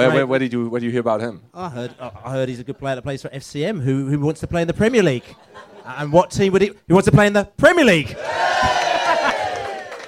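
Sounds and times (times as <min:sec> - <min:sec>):
speech: 0:00.0 - 0:08.8
laughter: 0:05.2 - 0:06.2, 0:08.6 - 0:10.0
pub crowd big cheer: 0:08.1 - 0:10.0.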